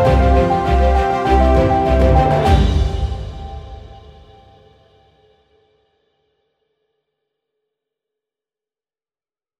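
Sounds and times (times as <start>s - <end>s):
short cinematic music: 0.0s - 4.7s.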